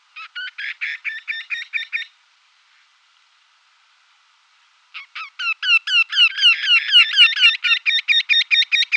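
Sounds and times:
Eurasian wryneck display call: 0.0s - 3.0s, 4.9s - 8.9s.

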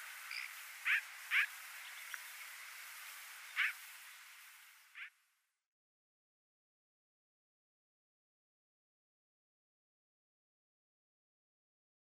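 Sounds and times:
hawfinch song: 0.0s - 5.2s.

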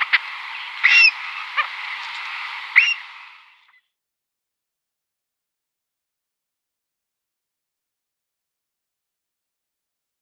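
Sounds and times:
Purple Heron nestlings calling: 0.0s - 3.4s.

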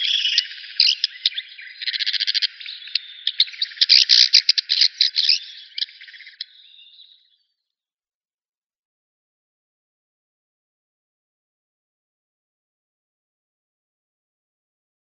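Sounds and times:
black redstart calling: 0.0s - 7.4s.

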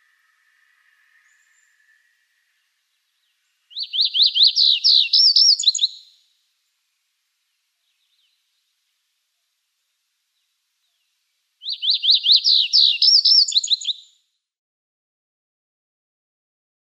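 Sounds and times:
chestnut bunting song: 0.0s - 6.8s, 7.4s - 9.0s, 9.7s - 14.3s.

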